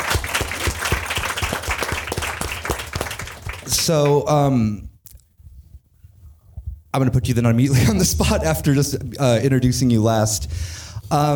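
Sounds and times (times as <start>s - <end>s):
audience applause: 0.0s - 4.3s
speech: 3.7s - 4.9s, 6.9s - 11.3s.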